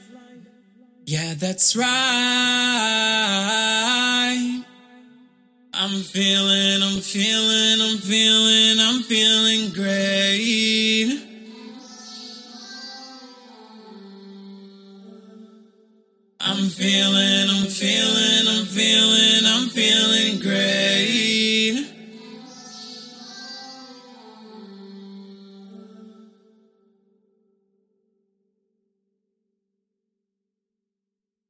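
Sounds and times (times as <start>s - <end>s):
a cappella pop vocals in D: 0.0s - 26.8s.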